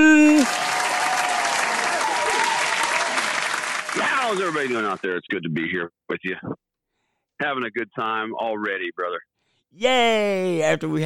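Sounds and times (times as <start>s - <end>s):
audience applause for a band leader at a live music event: 0.0s - 5.2s
speech: 4.4s - 6.6s, 7.4s - 11.0s.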